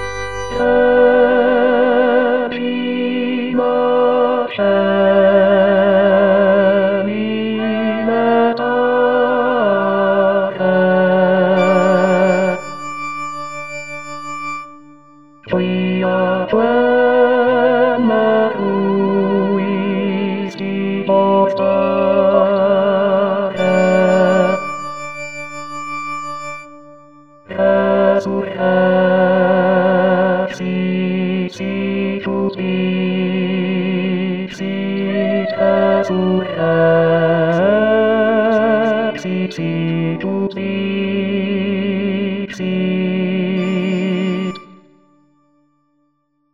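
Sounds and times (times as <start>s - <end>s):
baritone singing an Easter hymn in Latin: 0.6s - 12.7s, 15.5s - 24.8s, 27.5s - 44.6s.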